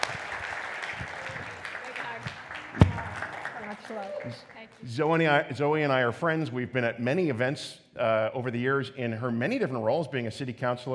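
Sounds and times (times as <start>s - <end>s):
audience applause at a community gathering: 0.0s - 4.8s
speech: 3.9s - 10.9s.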